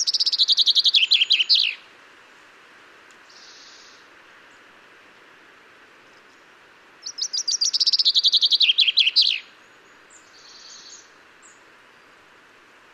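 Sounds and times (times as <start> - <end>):
common chaffinch Fringilla coelebs singing: 0.0 - 1.9, 3.2 - 5.3, 6.0 - 12.3.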